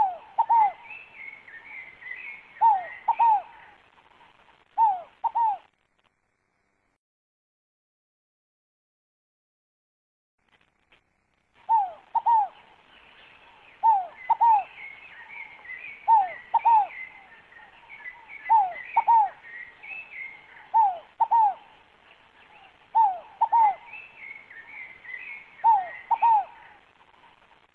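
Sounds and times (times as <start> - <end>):
scaled dove cooing: 0.0 - 3.8, 4.8 - 5.7, 11.6 - 12.8, 13.4 - 21.8, 22.4 - 27.4.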